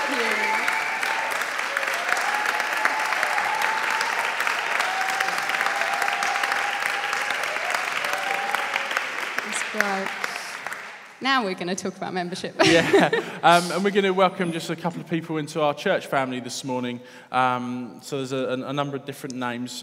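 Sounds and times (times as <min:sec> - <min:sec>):
church audience applause: 0:00.0 - 0:11.2
speech: 0:11.2 - 0:19.8
laughter: 0:12.6 - 0:14.9.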